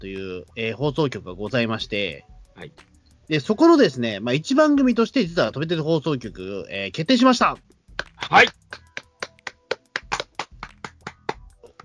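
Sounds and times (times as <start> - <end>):
speech: 0.0 - 8.6
light clapping: 7.9 - 11.8.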